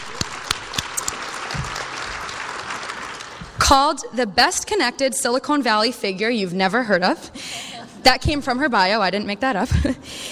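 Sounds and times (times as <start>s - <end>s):
audience applause: 0.0s - 3.6s
speech: 3.7s - 10.2s.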